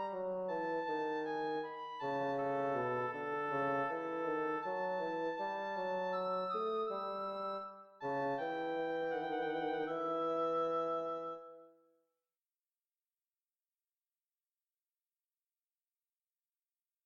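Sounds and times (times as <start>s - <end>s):
oboe and bassoon duet andante: 0.0s - 11.8s.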